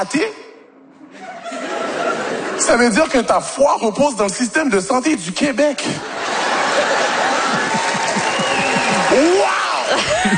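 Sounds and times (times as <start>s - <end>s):
speech: 0.0s - 0.4s, 2.6s - 6.3s
laughter: 1.1s - 3.2s, 5.8s - 10.3s
crowd cheering and whooping: 6.2s - 10.3s
audience applause: 6.3s - 10.3s.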